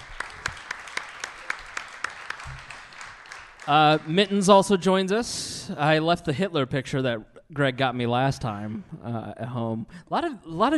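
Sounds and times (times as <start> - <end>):
audience applause: 0.0 - 4.7
speech: 3.7 - 10.7.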